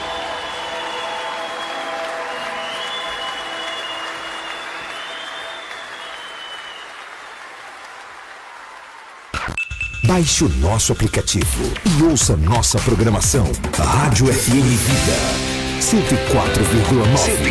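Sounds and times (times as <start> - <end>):
crowd applause at a Christian gathering: 0.0 - 9.6
speech: 10.1 - 17.4.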